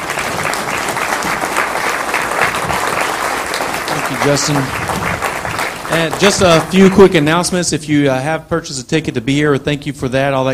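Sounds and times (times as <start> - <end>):
audience applause: 0.0 - 7.4
speech: 4.2 - 4.8, 5.9 - 10.5.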